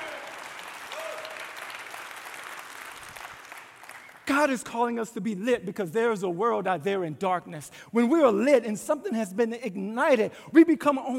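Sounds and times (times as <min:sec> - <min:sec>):
faint cheers and whoop: 0:00.0 - 0:01.6
crowd applauding during praise break: 0:00.0 - 0:04.3
speech: 0:04.4 - 0:11.1.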